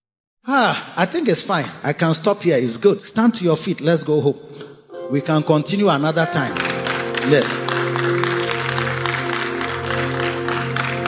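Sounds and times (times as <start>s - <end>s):
speech: 0.4s - 8.2s
audience clapping: 5.6s - 11.0s.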